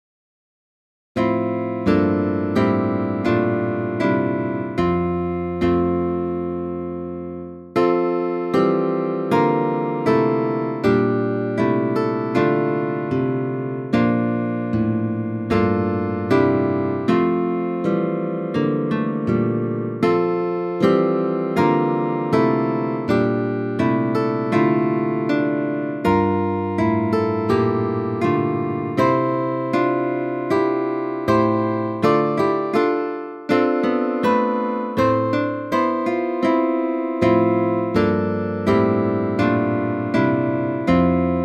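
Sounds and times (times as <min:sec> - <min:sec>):
guitar: 0:01.2 - 0:41.4.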